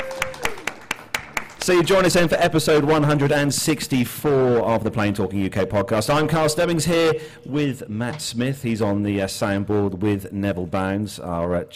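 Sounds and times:
audience clapping: 0:00.0 - 0:03.4
speech: 0:01.6 - 0:11.7.

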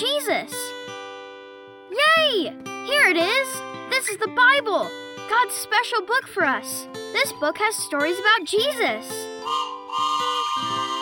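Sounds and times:
speech: 0:02.4 - 0:10.1
toy train whistle: 0:09.4 - 0:11.0.

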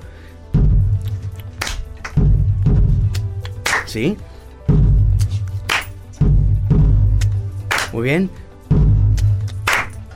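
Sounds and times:
deep booming bass drum hits: 0:00.6 - 0:01.2, 0:02.2 - 0:03.4, 0:04.7 - 0:05.3, 0:06.2 - 0:07.4, 0:08.7 - 0:09.4
speech: 0:03.9 - 0:04.4, 0:08.0 - 0:08.4.

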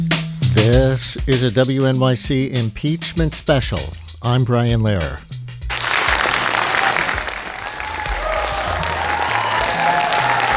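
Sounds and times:
speech: 0:00.7 - 0:05.4
applause from spectators in the gallery: 0:05.7 - 0:10.5.

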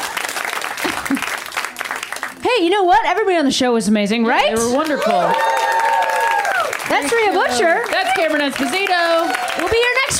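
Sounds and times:
crowd clapping: 0:00.0 - 0:02.4, 0:04.6 - 0:10.1
speech: 0:02.6 - 0:05.7, 0:06.9 - 0:10.1.

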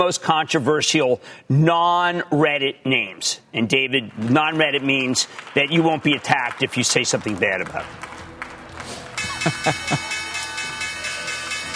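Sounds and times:
speech: 0:00.0 - 0:08.2, 0:09.6 - 0:10.1
laughter: 0:08.8 - 0:10.5
stock exchange opening bell ringing: 0:09.2 - 0:11.7.

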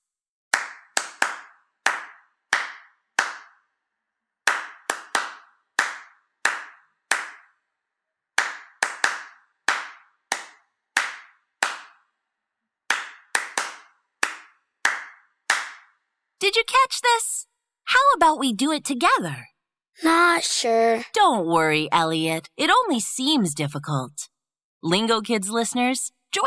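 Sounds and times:
hand claps in a song rhythm: 0:00.5 - 0:03.7, 0:04.4 - 0:07.6, 0:08.4 - 0:12.1, 0:12.9 - 0:16.0
speech: 0:16.5 - 0:26.4.

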